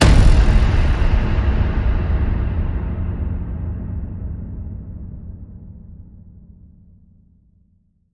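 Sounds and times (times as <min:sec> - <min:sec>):
big hit: 0:00.0 - 0:06.5.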